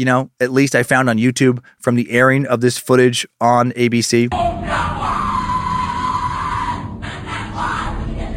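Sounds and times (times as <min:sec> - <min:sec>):
speech: 0:00.0 - 0:05.0
people yelling and shouting at a Skull and Bones initiation ceremony: 0:04.3 - 0:08.3.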